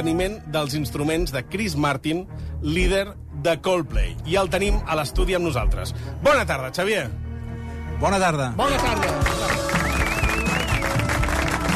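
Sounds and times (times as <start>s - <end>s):
speech: 0.0s - 7.2s, 8.0s - 9.7s
applause in the studio: 8.6s - 11.7s.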